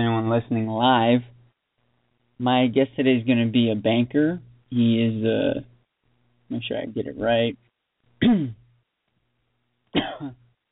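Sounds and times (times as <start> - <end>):
speech: 0.0 - 1.4, 2.4 - 5.7, 6.5 - 7.6, 8.2 - 8.6, 9.9 - 10.4
person coughing: 8.2 - 8.7, 10.0 - 10.5.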